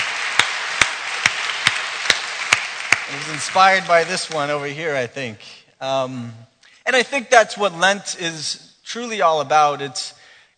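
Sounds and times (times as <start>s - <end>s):
round of applause for the choir and worship team: 0.0s - 4.8s
speech: 3.1s - 10.5s.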